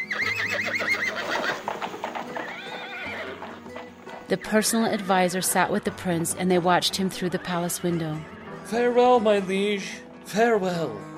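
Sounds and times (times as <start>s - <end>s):
horse neighing: 0.0s - 5.9s, 6.6s - 8.8s
horse hooves clip-clopping as a king rides away from the city: 0.1s - 7.9s
speech: 4.3s - 11.1s.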